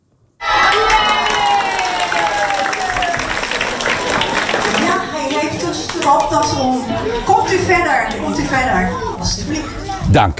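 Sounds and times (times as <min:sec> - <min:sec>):
loud applause and cheering from schoolchildren: 0:00.4 - 0:06.6
speech: 0:06.1 - 0:10.3.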